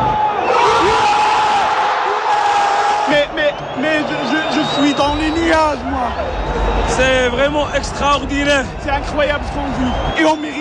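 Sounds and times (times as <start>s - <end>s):
football supporters cheering after a penalty shootout win: 0.0s - 10.5s
whistles: 3.1s - 7.8s, 9.1s - 10.5s
speech: 5.8s - 10.5s.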